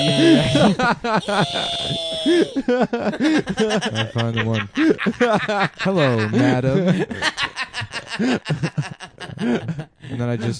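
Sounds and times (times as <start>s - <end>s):
voice imitating high-pitched echolocation screech: 0.0s - 2.6s
speech: 0.0s - 7.6s, 8.2s - 10.5s
laughter: 0.0s - 10.4s.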